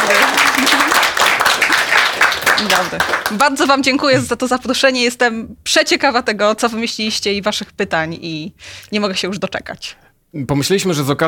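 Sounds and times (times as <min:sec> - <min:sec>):
audience applause: 0:00.0 - 0:03.4
speech: 0:02.8 - 0:11.2.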